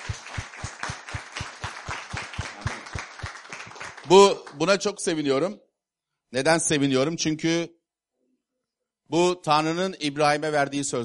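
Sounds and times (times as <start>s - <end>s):
rhythmic crowd applause: 0.0s - 5.0s
speech: 4.1s - 5.6s, 6.3s - 7.8s, 9.1s - 11.0s.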